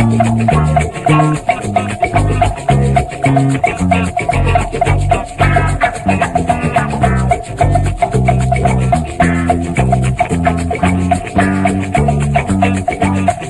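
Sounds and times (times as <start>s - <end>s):
bongos playing a vamp: 0.0s - 13.4s.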